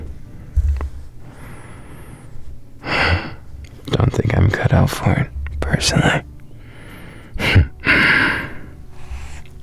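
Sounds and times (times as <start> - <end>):
audible breathing with gasping and sighing: 0.2 - 3.6, 6.4 - 9.6
speech: 4.9 - 6.3.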